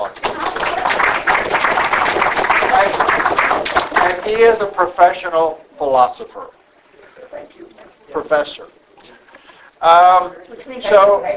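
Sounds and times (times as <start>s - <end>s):
audience applause: 0.0s - 4.6s
speech: 4.3s - 6.6s, 7.4s - 9.2s, 9.8s - 11.3s.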